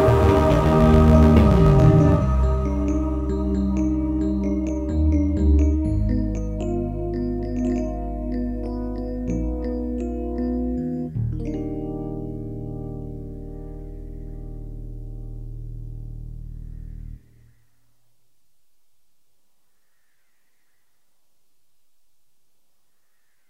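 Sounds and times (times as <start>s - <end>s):
frutiger aero themed music tracks: 0.0s - 18.0s.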